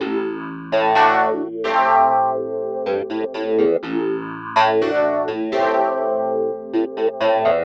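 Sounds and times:
synth house music at 125 BPM: 0.0s - 7.6s.

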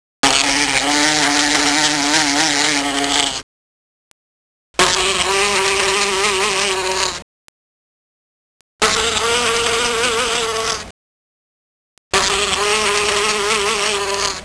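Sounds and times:
cartoon bees buzzing: 0.2s - 3.4s, 4.8s - 7.3s, 8.8s - 11.0s, 12.1s - 14.4s.

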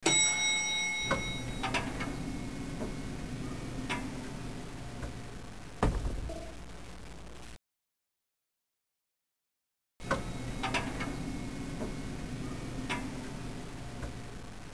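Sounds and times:
elevator buttons: 0.0s - 5.2s, 10.0s - 14.2s.

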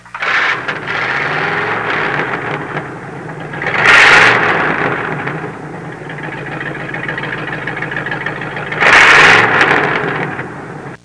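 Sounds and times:
hot rod engine: 0.0s - 11.0s.

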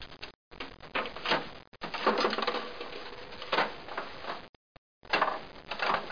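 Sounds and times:
arcade ambience: 0.0s - 6.1s.

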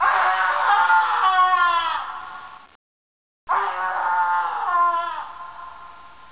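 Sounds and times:
man screaming: 0.0s - 2.2s, 3.5s - 5.7s.

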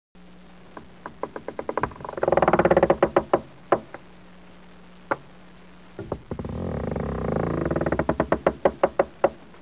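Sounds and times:
creaking: 0.7s - 4.0s, 6.0s - 9.6s.

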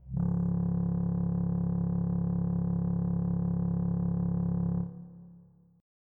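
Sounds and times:
hum: 0.0s - 5.8s.

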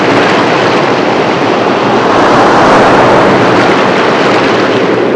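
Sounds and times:
tide coming in: 0.1s - 5.0s.

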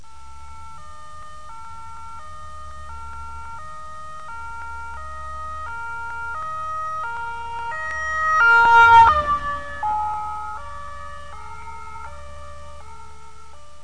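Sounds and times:
ambulance siren: 0.0s - 13.8s.

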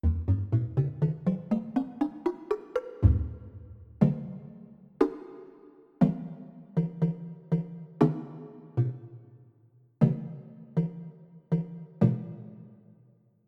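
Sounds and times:
wood block: 0.0s - 9.3s, 10.0s - 12.6s.

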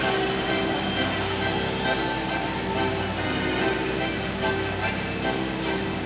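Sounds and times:
organ: 0.0s - 6.0s.

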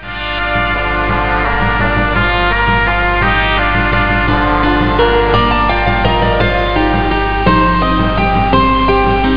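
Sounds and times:
happy music: 0.0s - 9.3s.

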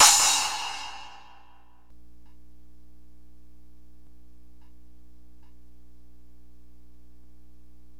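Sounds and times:
crash cymbal: 0.0s - 1.6s.

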